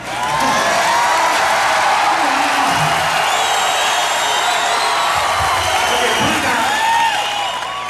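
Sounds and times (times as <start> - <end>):
studio audience applause: 0.0 - 7.8.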